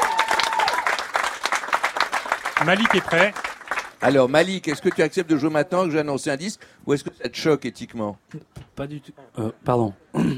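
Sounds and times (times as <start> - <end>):
radio show audience applause for its director: 0.0 - 5.6
speech: 2.6 - 3.4, 4.0 - 10.3.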